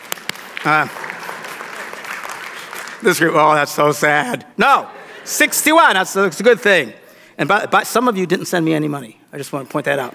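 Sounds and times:
audience clapping: 0:00.0 - 0:04.1
speech: 0:00.6 - 0:01.0, 0:03.0 - 0:10.1.

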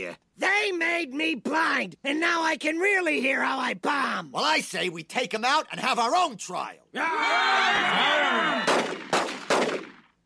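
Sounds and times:
speech: 0:00.0 - 0:09.0
clamorous noise like a shouting crowd: 0:07.0 - 0:08.8
gunshots fired at a fly: 0:08.6 - 0:10.2.

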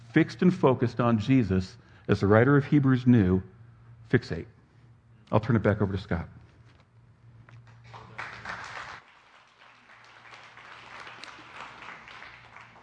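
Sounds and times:
low hum: 0:00.0 - 0:12.8
speech: 0:00.2 - 0:03.5, 0:04.1 - 0:04.6, 0:05.3 - 0:06.4
audience applause: 0:07.8 - 0:12.8.

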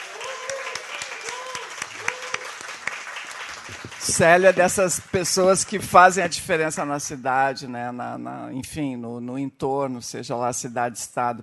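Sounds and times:
audience applause: 0:00.0 - 0:05.7
speech: 0:03.8 - 0:11.4.

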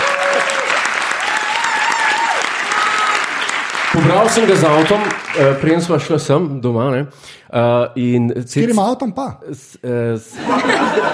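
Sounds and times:
audience applauding: 0:00.0 - 0:06.1
speech: 0:04.0 - 0:11.1
laughter: 0:10.3 - 0:11.1.

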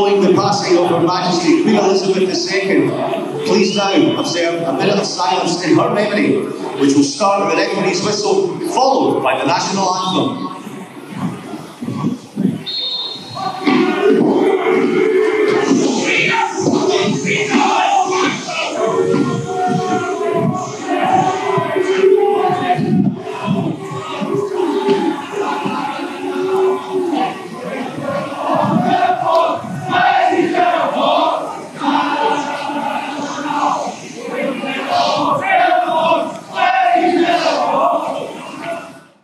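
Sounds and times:
speech: 0:00.0 - 0:10.5
football fans chanting in a stadium: 0:00.0 - 0:39.2.

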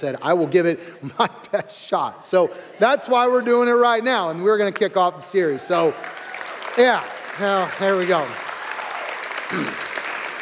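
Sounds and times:
speech: 0:00.0 - 0:06.2, 0:06.8 - 0:08.5, 0:09.5 - 0:09.9
audience clapping: 0:04.8 - 0:10.3.

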